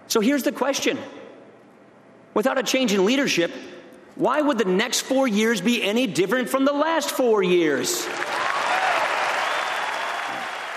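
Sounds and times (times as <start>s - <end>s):
speech: 0.1s - 1.2s, 2.4s - 8.4s
audience applause after a speech line: 8.0s - 10.7s.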